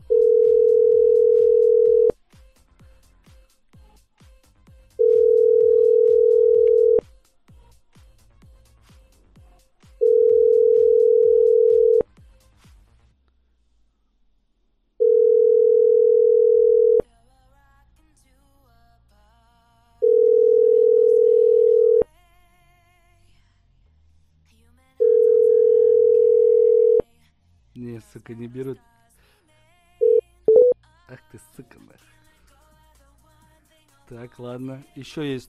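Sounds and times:
telephone ringback tone while a number is dialed: 0:00.1 - 0:02.2, 0:05.0 - 0:07.0, 0:10.0 - 0:12.0, 0:15.0 - 0:17.0, 0:20.0 - 0:22.0, 0:25.0 - 0:27.0, 0:30.0 - 0:30.8
speech: 0:28.3 - 0:28.9, 0:34.1 - 0:35.4.

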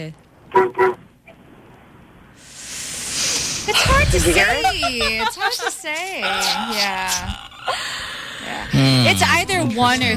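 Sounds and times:
speech: 0:00.0 - 0:01.0, 0:03.7 - 0:10.1
car horn honking: 0:00.5 - 0:01.0
rising hiss of noise: 0:02.4 - 0:04.2
laughter: 0:03.7 - 0:09.4.

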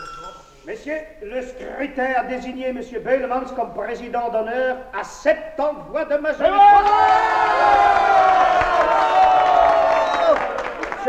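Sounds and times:
speech: 0:00.7 - 0:08.1
brewers' assembly crowd cheering and shouting an ovation in a 1956 radio play: 0:06.4 - 0:11.0.

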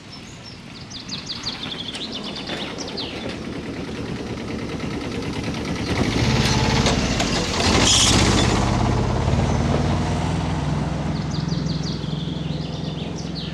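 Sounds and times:
birds chirping: 0:00.0 - 0:04.6, 0:09.2 - 0:13.5
gravedigger's small car engine droning as it passes: 0:00.8 - 0:13.5.

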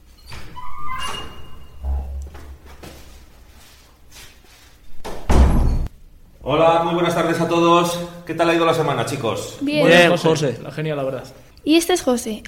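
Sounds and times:
heavy footsteps of someone approaching with scraping: 0:01.9 - 0:04.8
speech: 0:06.5 - 0:12.4.

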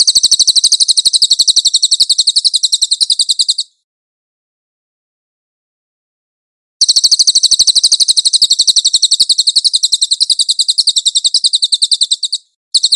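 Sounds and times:
cililin chattering trills: 0:00.0 - 0:03.8, 0:06.8 - 0:12.9.

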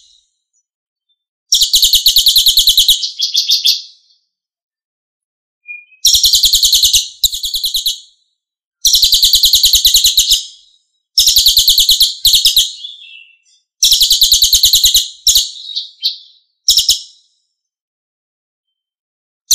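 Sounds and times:
Lesser Racket-tailed Drongo song in tembakan style: 0:00.0 - 0:04.5, 0:05.6 - 0:17.6, 0:18.6 - 0:19.5.

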